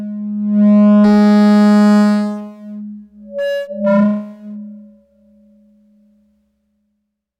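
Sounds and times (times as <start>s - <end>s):
audio feedback: 0.6s - 6.1s
electronic beeps and boops: 2.7s - 5.8s.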